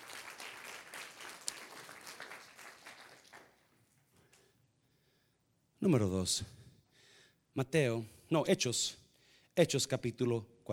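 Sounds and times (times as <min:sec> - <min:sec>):
audience applause: 0:00.0 - 0:03.6
speech: 0:05.8 - 0:06.6, 0:07.6 - 0:09.0, 0:09.6 - 0:10.7.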